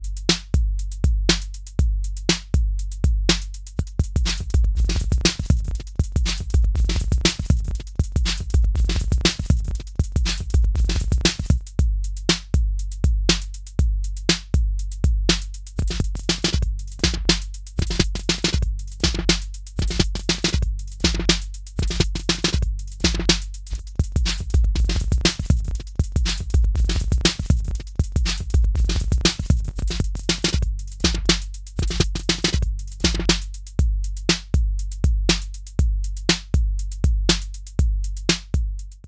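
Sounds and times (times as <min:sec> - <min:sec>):
sequencer beat: 0:00.1 - 0:39.0.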